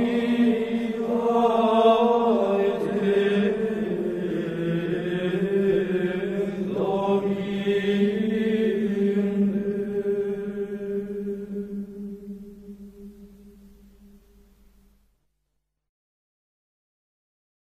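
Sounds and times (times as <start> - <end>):
Gregorian chant: 0.0 - 14.0.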